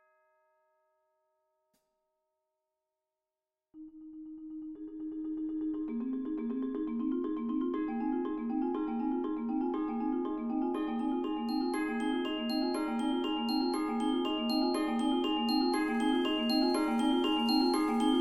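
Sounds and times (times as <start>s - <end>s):
chimes in a percussion ensemble: 0.0s - 1.1s, 5.7s - 18.1s
vibraphone in a percussion ensemble: 4.8s - 18.1s
xylophone in a percussion ensemble: 4.8s - 18.1s
2 marimbas in a percussion ensemble: 4.9s - 18.1s
bells in a percussion ensemble: 10.8s - 18.1s.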